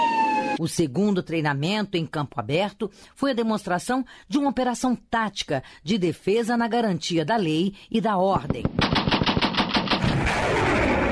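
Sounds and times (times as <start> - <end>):
speech: 0.6 - 9.0
rapid gunfire at a military live-fire drill: 8.6 - 11.1
artillery fire and launches at a military live-fire drill: 8.8 - 11.1.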